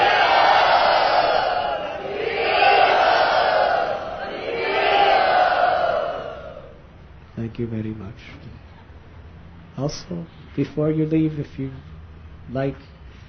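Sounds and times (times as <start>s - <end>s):
large crowd loudly chanting in unison: 0.0s - 6.8s
speech: 7.6s - 8.7s, 9.8s - 11.9s, 12.5s - 12.9s.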